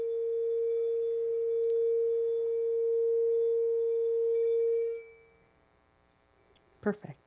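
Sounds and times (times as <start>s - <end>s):
singing bowl ringing: 0.0s - 5.6s.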